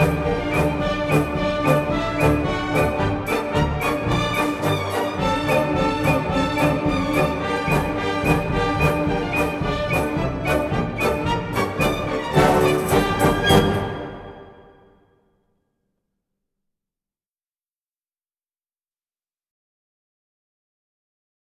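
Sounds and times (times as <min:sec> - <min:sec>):
Persian instrumental march: 0:00.0 - 0:14.9.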